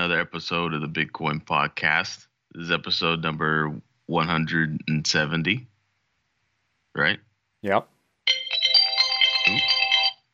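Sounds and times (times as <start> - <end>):
speech: 0.1 - 5.7, 7.0 - 7.9, 9.5 - 9.7
phone alarm chiming an electronic melody: 8.3 - 10.2.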